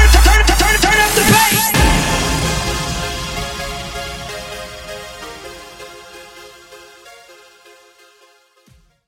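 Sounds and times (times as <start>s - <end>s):
funk bootleg music at 130 BPM: 0.0s - 7.1s.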